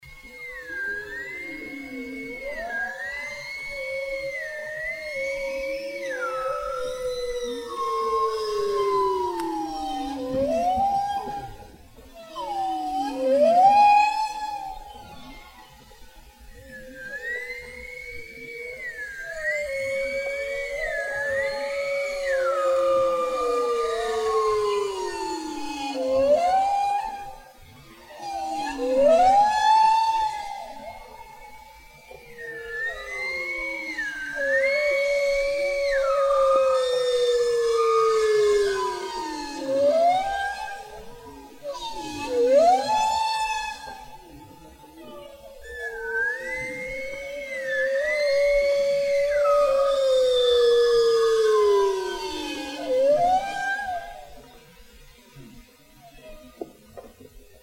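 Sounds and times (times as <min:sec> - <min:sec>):
whale song: 0:00.0 - 0:57.6.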